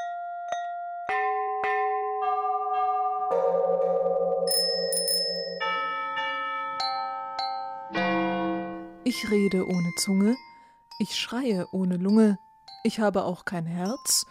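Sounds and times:
church bells ringing: 1.1s - 10.3s
speech: 9.1s - 14.2s.

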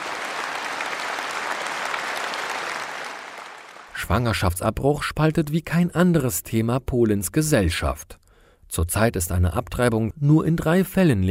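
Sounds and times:
clapping: 0.0s - 4.0s
speech: 4.0s - 11.3s.

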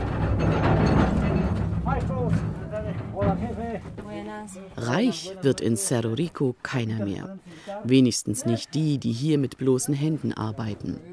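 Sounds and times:
mine transport carts rumbling over rails: 0.0s - 4.5s
speech: 2.9s - 11.1s.

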